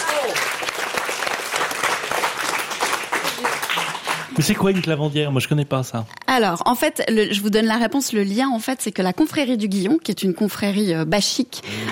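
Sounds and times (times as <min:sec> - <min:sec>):
audience applause: 0:00.0 - 0:05.0
speech: 0:04.4 - 0:11.9.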